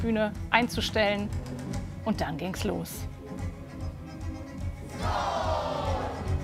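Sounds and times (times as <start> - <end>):
speech: 0.0 - 3.1
theatre audience cheering: 5.0 - 6.3.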